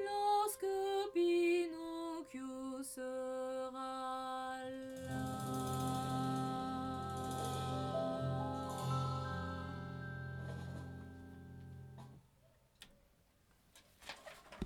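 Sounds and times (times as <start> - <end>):
soprano voice: 0.0 - 10.0.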